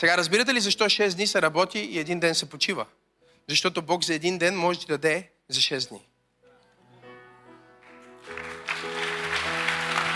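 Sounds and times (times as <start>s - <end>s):
speech: 0.0s - 6.1s
audience applause: 8.0s - 10.1s.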